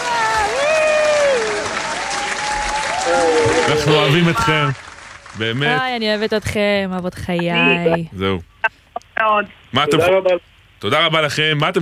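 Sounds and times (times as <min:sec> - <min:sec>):
audience applause: 0:00.0 - 0:06.3
speech: 0:03.7 - 0:04.8, 0:05.4 - 0:11.8.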